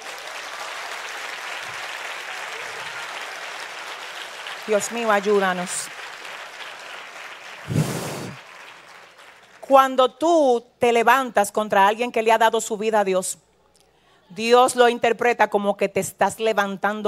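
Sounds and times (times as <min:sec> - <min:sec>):
audience applauding: 0:00.0 - 0:09.7
speech: 0:04.7 - 0:06.0, 0:09.7 - 0:13.4, 0:14.3 - 0:17.0.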